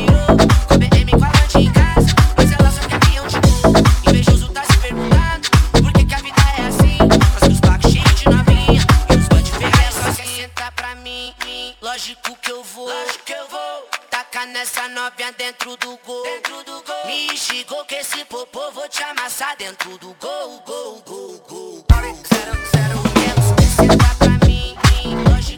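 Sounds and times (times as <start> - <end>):
pancadao funk beat: 0.0 - 10.9, 21.9 - 25.5.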